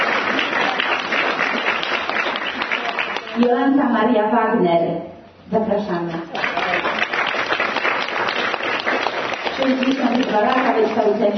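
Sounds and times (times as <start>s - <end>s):
crowd applause: 0.0s - 3.5s, 6.3s - 11.3s
speech: 3.4s - 6.4s, 9.6s - 11.3s.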